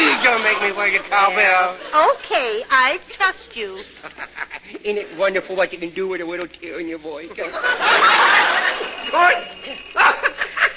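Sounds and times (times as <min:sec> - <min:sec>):
laughter: 0:00.0 - 0:02.2, 0:03.7 - 0:05.4, 0:07.3 - 0:10.7
speech: 0:00.8 - 0:10.7
doorbell ringing continuously: 0:07.9 - 0:10.7.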